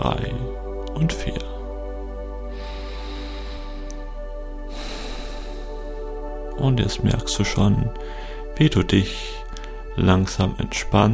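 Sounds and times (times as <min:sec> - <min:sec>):
soft steady tonal drone: 0:00.0 - 0:11.1
speech: 0:01.0 - 0:01.5, 0:06.6 - 0:09.4, 0:10.0 - 0:11.1
slow deep breathing during a guided relaxation exercise: 0:01.6 - 0:06.6, 0:07.9 - 0:10.0.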